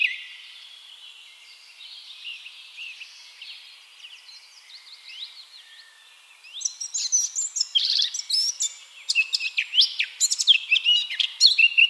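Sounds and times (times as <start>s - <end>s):
Eurasian blackcap warbling song: 6.4s - 11.8s.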